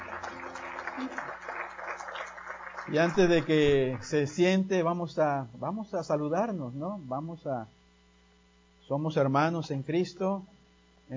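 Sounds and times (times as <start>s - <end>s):
church congregation applauding to praise God: 0.0s - 4.3s
speech: 1.0s - 1.4s, 2.9s - 7.8s, 8.9s - 10.5s.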